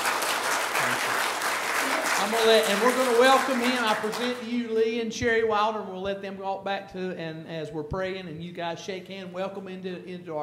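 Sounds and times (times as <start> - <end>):
audience applause at a church fellowship gathering: 0.0 - 4.4
speech: 0.8 - 10.4.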